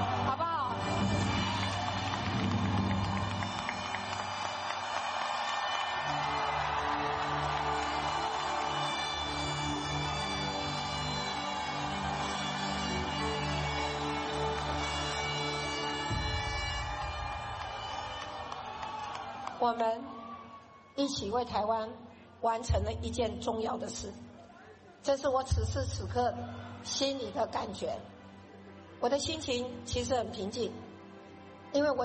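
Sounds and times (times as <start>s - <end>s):
large crowd cheering and shouting: 0.0s - 21.0s
speech: 19.7s - 20.1s, 21.0s - 24.2s, 25.0s - 28.1s, 29.0s - 30.8s, 31.7s - 32.0s.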